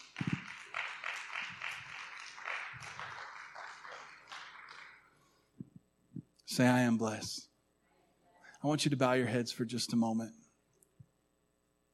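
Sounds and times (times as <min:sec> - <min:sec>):
crowd applauding: 0:00.0 - 0:05.4
speech: 0:06.6 - 0:07.5, 0:08.6 - 0:10.4.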